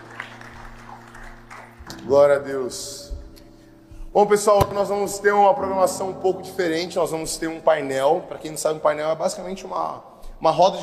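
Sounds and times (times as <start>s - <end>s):
audience applause: 0.0s - 1.9s
speech: 2.0s - 3.2s, 4.2s - 10.8s.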